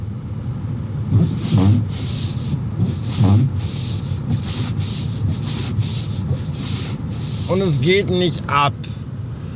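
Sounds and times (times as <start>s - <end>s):
ice scraper scraping frozen windshield: 1.1s - 7.7s
speech: 7.5s - 9.0s.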